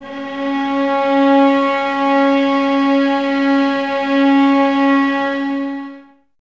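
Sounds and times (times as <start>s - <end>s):
violas playing C sharp without vibrato: 0.0s - 6.2s.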